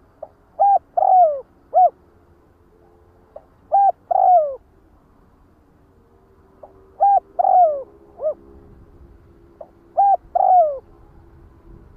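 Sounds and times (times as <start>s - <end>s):
spotted dove cooing: 0.0s - 2.0s, 3.4s - 4.6s, 6.6s - 8.5s, 9.6s - 11.0s.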